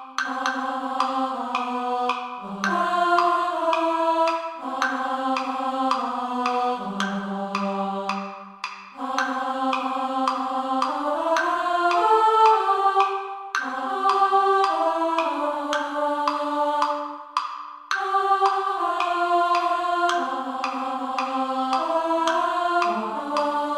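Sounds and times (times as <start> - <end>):
women singing soprano: 0.0 - 17.3, 17.9 - 23.7.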